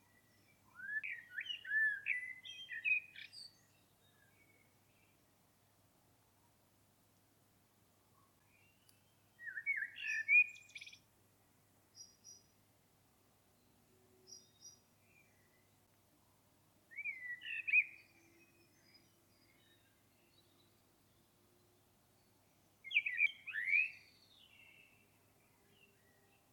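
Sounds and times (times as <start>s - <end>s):
common blackbird song: 0.1s - 4.6s, 8.5s - 11.0s, 14.3s - 15.8s, 16.9s - 21.2s, 22.8s - 26.4s.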